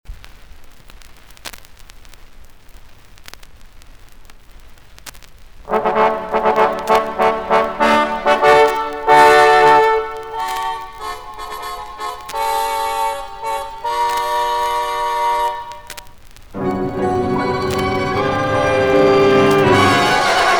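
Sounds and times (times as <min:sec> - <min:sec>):
orchestral overture: 0:05.7 - 0:15.9, 0:16.6 - 0:20.5.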